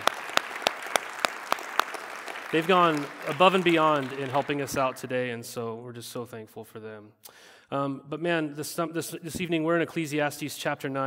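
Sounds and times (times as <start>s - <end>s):
audience applause: 0.0s - 5.2s
speech: 2.5s - 11.0s.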